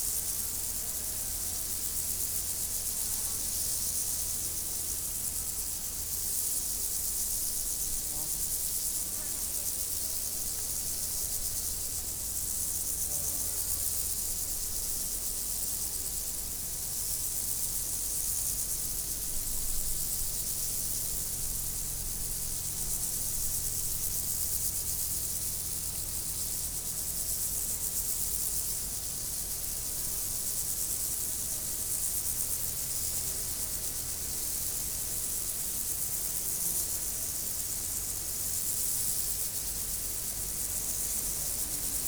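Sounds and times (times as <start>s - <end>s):
insect chorus buzzing: 0.0s - 42.0s.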